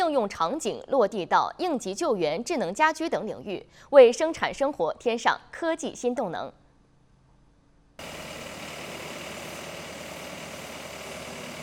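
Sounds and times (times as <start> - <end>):
speech: 0.1 - 6.6, 8.0 - 8.5
tank-like drainage robot engine running two water pumps: 8.0 - 11.6.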